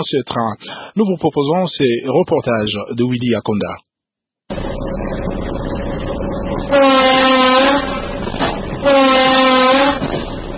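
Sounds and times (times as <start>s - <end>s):
speech: 0.0s - 3.9s, 6.7s - 7.3s
urban train rumbling as it pulls away, heard from onboard: 4.5s - 10.5s
urban train horn blasts: 6.6s - 10.5s.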